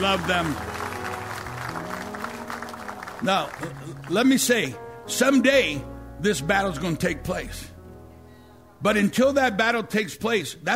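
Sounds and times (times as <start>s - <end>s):
speech: 0.0s - 0.8s, 3.2s - 7.7s, 8.8s - 10.7s
audience applause: 0.0s - 4.7s.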